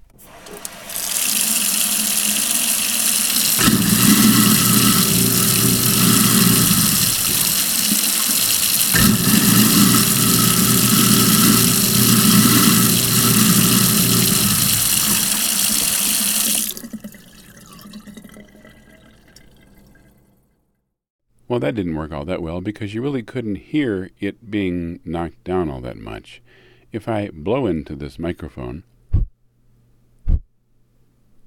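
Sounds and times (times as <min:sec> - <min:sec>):
garbage disposal grinding motor hum: 0:00.0 - 0:18.3
running water hiss: 0:00.0 - 0:20.3
speech: 0:21.6 - 0:28.9.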